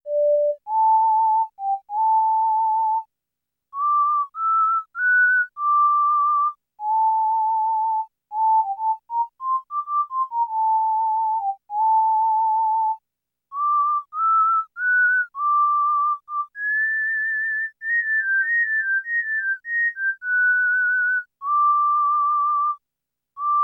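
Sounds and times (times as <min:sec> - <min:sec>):
whistling: 0:00.1 - 0:03.1, 0:03.8 - 0:22.8, 0:23.4 - 0:23.6.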